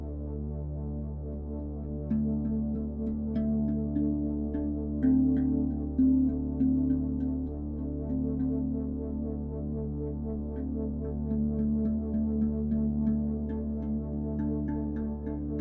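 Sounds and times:
binaural beats low hum of layered tones: 0:00.0 - 0:15.5.

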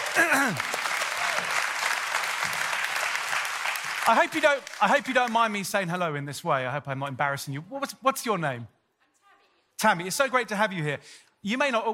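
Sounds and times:
audience applause: 0:00.0 - 0:05.7
speech: 0:00.2 - 0:00.8, 0:04.0 - 0:08.8, 0:09.8 - 0:11.9.

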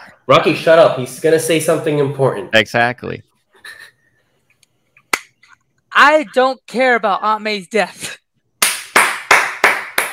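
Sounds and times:
speech: 0:00.3 - 0:03.8, 0:06.0 - 0:08.1
person clapping hands: 0:08.6 - 0:10.1.

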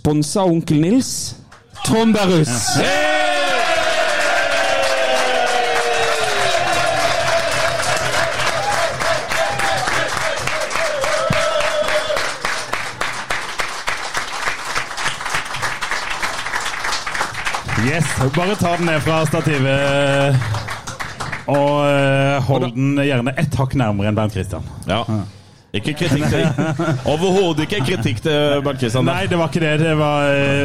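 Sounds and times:
speech: 0:00.0 - 0:03.2, 0:17.9 - 0:20.6, 0:21.5 - 0:30.6
crowd cheering and whooping: 0:01.8 - 0:12.5
audience applause: 0:02.0 - 0:21.9
laughter: 0:25.8 - 0:30.6.

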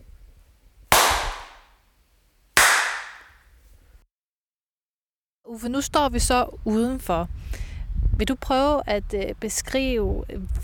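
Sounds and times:
hand claps echoing in a room: 0:00.9 - 0:01.7, 0:02.6 - 0:03.4
speech: 0:05.5 - 0:07.6, 0:08.2 - 0:10.6.

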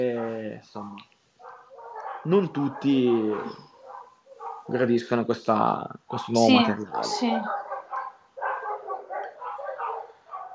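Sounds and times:
several dogs barking and yelping outside: 0:00.0 - 0:00.6, 0:01.4 - 0:04.8, 0:06.4 - 0:10.5
speech: 0:00.0 - 0:01.2, 0:02.2 - 0:03.7, 0:04.7 - 0:07.6.

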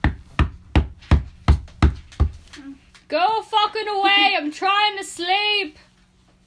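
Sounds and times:
loud heavy knocking on a door: 0:00.0 - 0:02.5
speech: 0:03.1 - 0:05.8.

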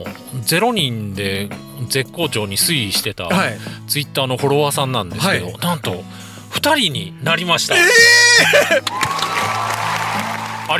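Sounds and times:
speech: 0:00.0 - 0:09.1
laughter: 0:07.7 - 0:09.6
applause sound effect: 0:08.7 - 0:10.7.

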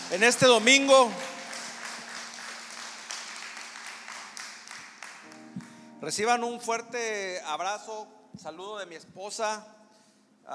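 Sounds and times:
audience applause: 0:00.0 - 0:05.6
speech: 0:00.1 - 0:01.3, 0:06.0 - 0:09.8.

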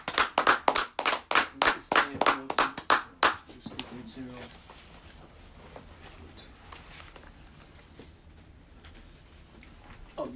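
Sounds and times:
class clapping: 0:00.0 - 0:03.4.

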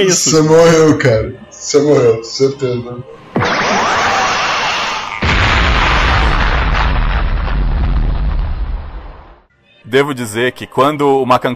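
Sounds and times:
speech: 0:00.0 - 0:03.5, 0:09.9 - 0:11.5
video game explosion: 0:03.4 - 0:09.4.

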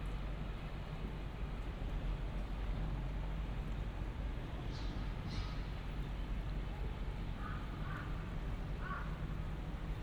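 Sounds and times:
traffic rumble in Shinbashi, Tokyo: 0:00.2 - 0:10.0
voices in Shinbashi street: 0:03.4 - 0:10.0.

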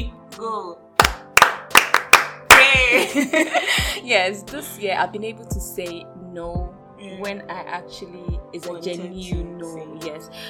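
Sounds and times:
speech: 0:00.0 - 0:00.9, 0:02.8 - 0:10.4
hand clapping: 0:01.0 - 0:02.8.

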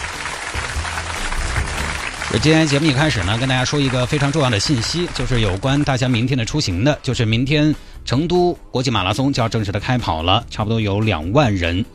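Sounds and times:
applause: 0:00.0 - 0:06.4
speech: 0:02.3 - 0:11.9.

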